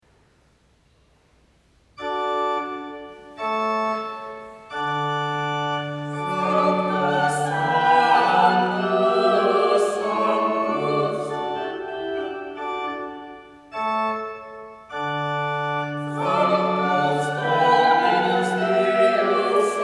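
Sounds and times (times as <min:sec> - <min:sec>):
choral mass music in D major: 0:02.0 - 0:19.8.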